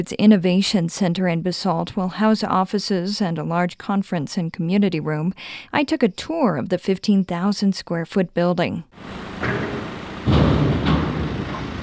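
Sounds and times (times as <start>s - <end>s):
speech: 0.0s - 9.7s
steady low rumbling noise: 9.0s - 11.8s
construction crew hammering: 9.2s - 11.8s.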